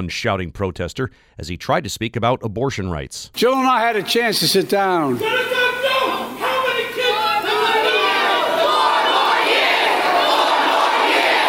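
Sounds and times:
speech: 0:00.0 - 0:05.6
rally crowd chanting in unison: 0:06.2 - 0:11.4.

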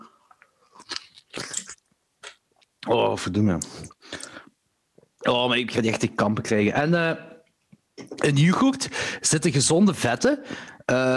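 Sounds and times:
person chewing crunchy food: 0:00.6 - 0:02.4
speech: 0:02.9 - 0:04.0, 0:05.3 - 0:07.3, 0:08.2 - 0:11.1.

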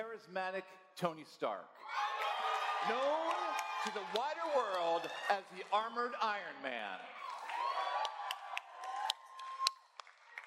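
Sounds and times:
speech: 0:00.0 - 0:02.1, 0:02.8 - 0:07.2
crowd cheering and whooping: 0:01.8 - 0:05.8, 0:07.1 - 0:10.4
clapping close to a microphone: 0:02.9 - 0:05.8, 0:07.2 - 0:10.4.

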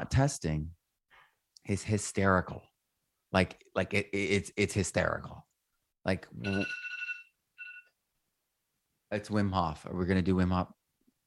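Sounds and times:
speech: 0:00.1 - 0:00.8, 0:01.6 - 0:02.7, 0:03.3 - 0:06.9, 0:09.1 - 0:11.2
phone alarm ringing: 0:06.4 - 0:07.9.

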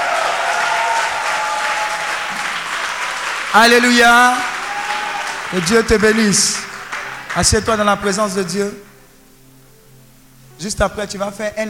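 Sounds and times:
congregation applauding in praise at a church service: 0:00.0 - 0:09.0
speech: 0:03.6 - 0:04.5, 0:05.5 - 0:06.7, 0:07.4 - 0:08.9, 0:10.6 - 0:11.6.

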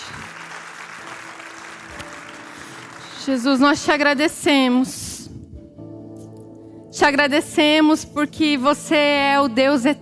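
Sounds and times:
audience applause: 0:00.0 - 0:03.2
speech: 0:03.2 - 0:05.0, 0:07.0 - 0:09.9.

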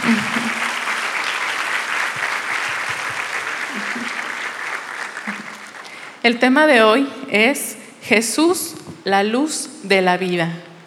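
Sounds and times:
audience applause: 0:00.0 - 0:06.2
speech: 0:00.1 - 0:00.4, 0:06.2 - 0:10.7
laughter: 0:03.6 - 0:04.4.

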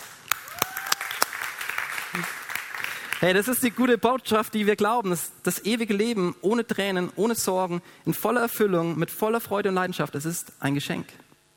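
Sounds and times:
audience clapping: 0:00.0 - 0:03.6
speech: 0:02.1 - 0:02.4, 0:03.2 - 0:11.2.

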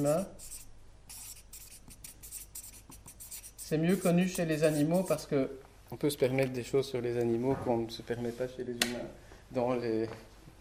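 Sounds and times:
speech: 0:00.0 - 0:00.6, 0:03.7 - 0:10.3
pen or marker writing by hand: 0:00.0 - 0:05.2.

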